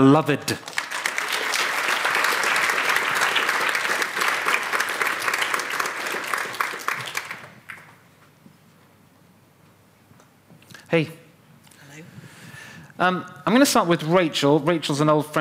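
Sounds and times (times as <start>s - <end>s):
speech: 0.0s - 0.8s, 10.9s - 11.2s, 13.0s - 15.3s
audience applause: 0.6s - 8.0s.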